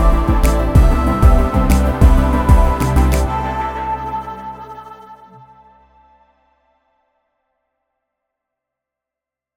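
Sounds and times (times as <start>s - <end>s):
analog synths: 0.0s - 6.2s.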